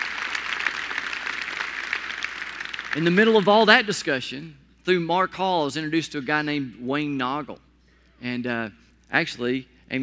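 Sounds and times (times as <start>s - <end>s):
audience applauding a ministry group: 0.0s - 3.6s
speech: 2.9s - 10.0s.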